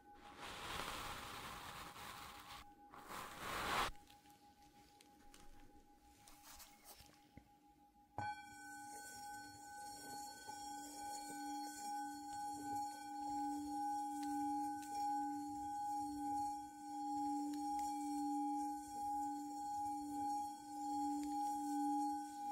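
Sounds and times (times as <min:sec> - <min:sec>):
soft brushing and rubbing: 0:00.0 - 0:07.4
thick hissing swipe: 0:03.2 - 0:03.9
Tibetan singing bowl struck and ringing: 0:08.2 - 0:22.5.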